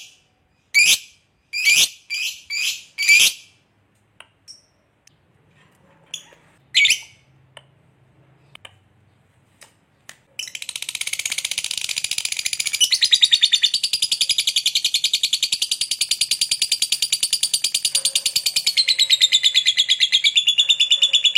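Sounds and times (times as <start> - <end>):
lovebird chattering: 0.7 - 3.5, 10.4 - 21.3.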